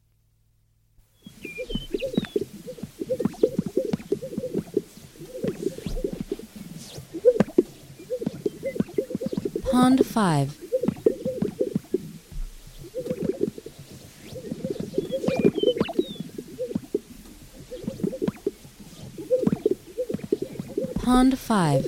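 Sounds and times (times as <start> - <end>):
thin whistled notes from other birds: 1.2 - 2.4, 14.2 - 16.7
greater sage-grouse gulping pops and coos: 1.5 - 9.6, 10.6 - 21.0
speech: 9.8 - 10.6, 21.1 - 21.8.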